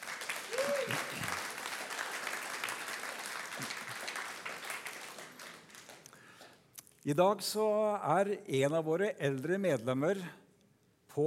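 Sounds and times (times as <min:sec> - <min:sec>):
warm audience applause: 0:00.0 - 0:06.5
speech: 0:07.1 - 0:10.4.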